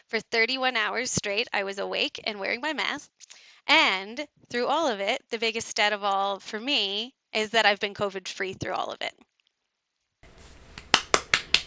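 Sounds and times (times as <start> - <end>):
speech: 0.1 - 9.3
person hand clapping: 10.4 - 11.6.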